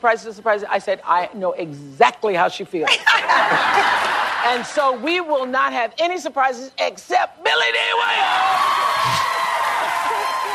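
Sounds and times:
speech: 0.0s - 9.3s
laughter: 2.9s - 4.8s
crowd cheering wildly: 7.9s - 10.5s.

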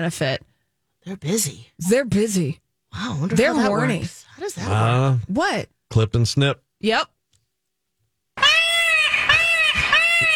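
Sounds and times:
speech: 0.0s - 7.2s
peacock calls: 8.4s - 10.3s.

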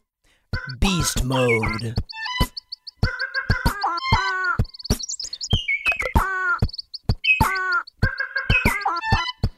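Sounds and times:
Madagascar bird calls set to a beat: 0.6s - 9.5s
speech: 0.7s - 2.1s.

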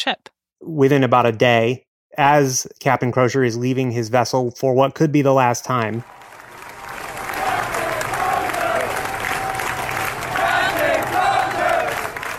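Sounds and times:
speech: 0.0s - 6.2s
hundreds of sailors aboard a ship cheering and applauding their captain: 5.8s - 12.3s.

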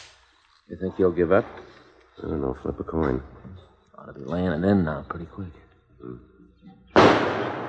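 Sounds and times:
speech: 0.7s - 7.6s
tear gas gun firing bang: 7.0s - 7.6s.

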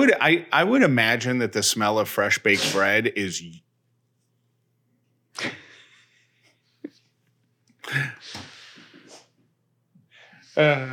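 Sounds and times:
speech: 0.0s - 3.6s, 5.4s - 5.6s, 7.9s - 8.5s, 10.6s - 10.9s
pot cake dog sneezing: 2.5s - 3.0s.

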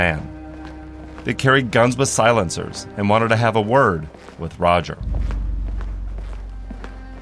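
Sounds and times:
speech: 0.0s - 0.3s, 1.2s - 5.4s
men's footsteps walking down a hospital hallway: 0.0s - 7.2s
low rumble: 5.0s - 7.2s.

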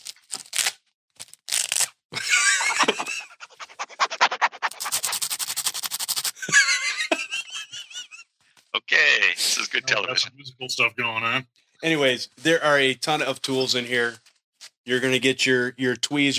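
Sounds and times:
Velcro being ripped open: 0.0s - 2.0s, 3.5s - 6.4s
laughter: 2.2s - 4.9s, 6.4s - 8.2s, 8.8s - 10.3s
speech: 9.5s - 14.2s, 14.9s - 16.3s.

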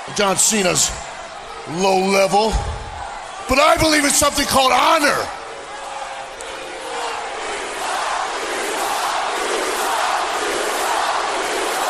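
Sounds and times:
large arena crowd jeering: 0.0s - 11.8s
speech: 0.1s - 2.8s, 3.5s - 5.4s.

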